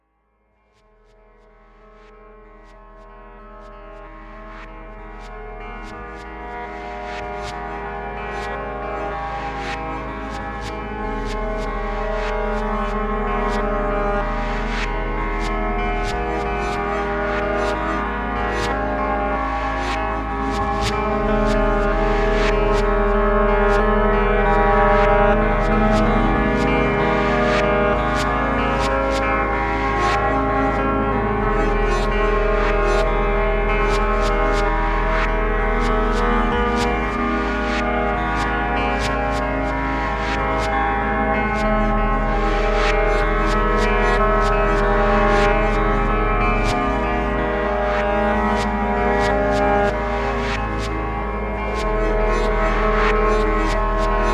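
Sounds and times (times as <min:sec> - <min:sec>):
drone: 0:00.9 - 0:54.3.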